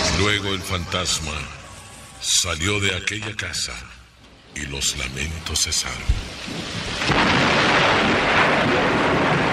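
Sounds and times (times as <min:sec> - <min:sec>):
speech: 0:00.2 - 0:01.6, 0:02.2 - 0:09.2
thunder clap: 0:06.1 - 0:09.5.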